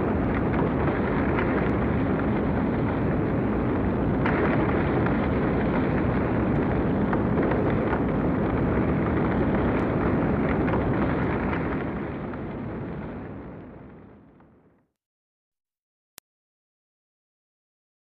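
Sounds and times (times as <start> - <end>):
hurricane wind: 0.0 - 14.4.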